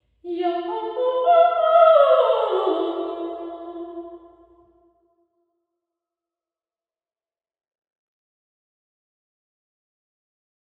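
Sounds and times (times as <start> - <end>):
person singing in a women's club: 0.3 - 4.3.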